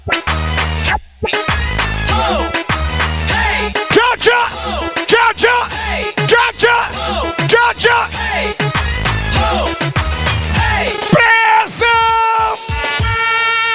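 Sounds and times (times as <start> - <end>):
electronic music: 0.0 - 13.6
crowd at a live show shouting hey: 3.3 - 8.1, 10.6 - 13.2.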